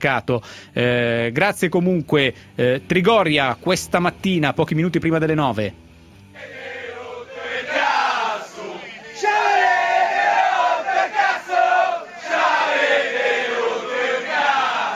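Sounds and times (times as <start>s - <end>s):
speech: 0.0s - 5.8s
football fans chanting in unison at a training ground: 6.4s - 14.9s.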